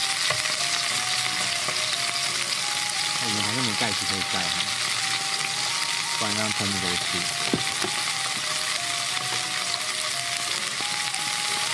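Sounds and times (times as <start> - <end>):
steak frying in a small pan: 0.0 - 11.7
speech: 3.3 - 4.8, 6.2 - 8.0.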